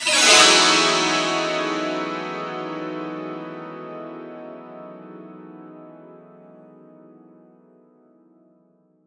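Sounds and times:
santoor: 0:00.0 - 0:06.2.

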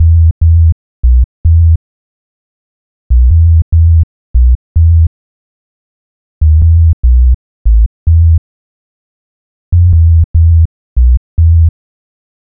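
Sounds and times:
low bass: 0:00.0 - 0:01.8, 0:03.1 - 0:05.1, 0:06.4 - 0:08.4, 0:09.7 - 0:11.7.

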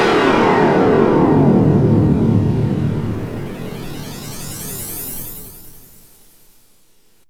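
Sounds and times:
whooshes: 0:00.1 - 0:05.8.

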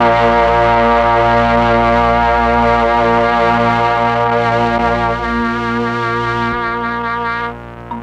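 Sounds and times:
string melody: 0:00.0 - 0:08.0.

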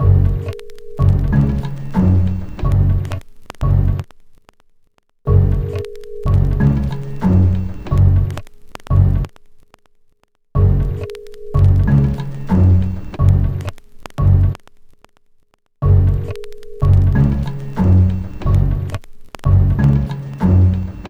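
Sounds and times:
hip-hop bass: 0:00.0 - 0:04.0, 0:05.3 - 0:09.3, 0:11.6 - 0:14.6, 0:15.8 - 0:21.0.

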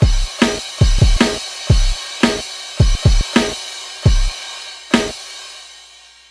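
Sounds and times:
hardcore breakbeat drums: 0:00.0 - 0:05.8.

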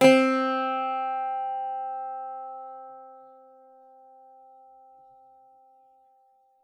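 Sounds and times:
bouzouki playing C4: 0:00.0 - 0:03.4.

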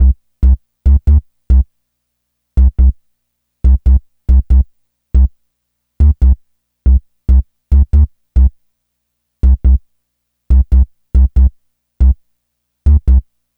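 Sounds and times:
pedal bass line: 0:00.0 - 0:01.6, 0:02.6 - 0:02.9, 0:03.7 - 0:04.6, 0:06.0 - 0:08.5, 0:09.4 - 0:09.8, 0:10.5 - 0:12.2, 0:12.9 - 0:13.2.

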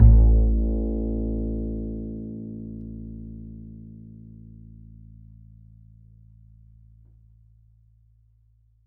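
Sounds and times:
upright acoustic bass in E: 0:00.0 - 0:04.4.

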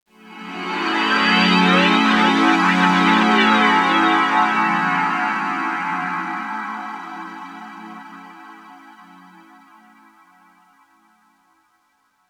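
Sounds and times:
FM synth pad for underground UK house and electro: 0:00.2 - 0:10.0.

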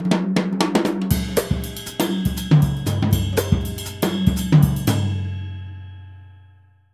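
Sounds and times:
jazz music: 0:01.1 - 0:05.4.

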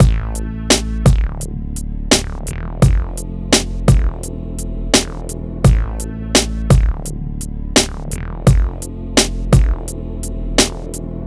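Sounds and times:
hip hop and R&B drum loops: 0:00.0 - 0:01.5, 0:02.1 - 0:04.3, 0:05.0 - 0:07.1, 0:07.8 - 0:10.0.

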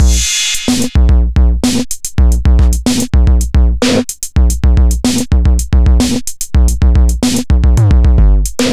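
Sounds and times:
drum beat at 110 bpm: 0:00.0 - 0:08.7.

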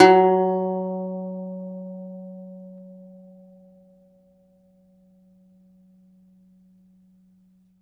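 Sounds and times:
second domra plucked strings: 0:00.0 - 0:02.4.

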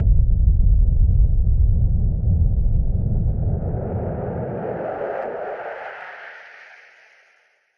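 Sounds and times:
filtered noise bomb boom: 0:00.0 - 0:05.8.

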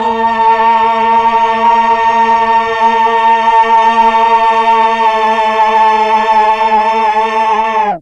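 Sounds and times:
Mellotron vocal sound: 0:00.0 - 0:08.0.

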